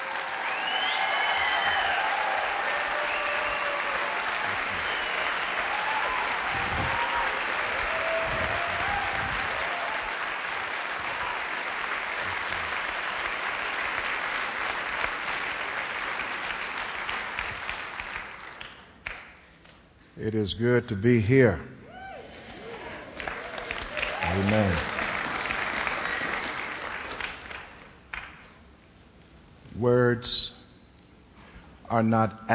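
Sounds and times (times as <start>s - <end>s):
audience applause welcoming a guest preacher: 0.0s - 19.2s, 22.3s - 28.3s
speech: 20.2s - 21.7s, 30.2s - 30.5s, 32.0s - 32.5s.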